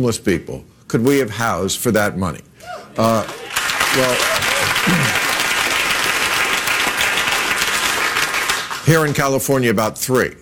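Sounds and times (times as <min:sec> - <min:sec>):
speech: 0:00.0 - 0:05.2, 0:08.9 - 0:10.3
crowd applause: 0:03.0 - 0:08.9.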